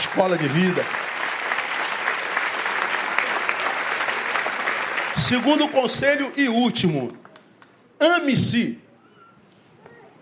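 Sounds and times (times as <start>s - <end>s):
audience applauding: 0.0s - 7.5s
speech: 0.2s - 1.0s, 5.2s - 7.2s, 8.0s - 8.8s.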